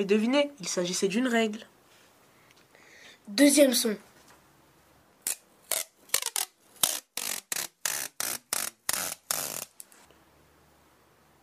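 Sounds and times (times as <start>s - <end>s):
speech: 0.0s - 1.7s, 3.3s - 4.1s
adhesive tape being pulled off roll: 5.2s - 10.0s.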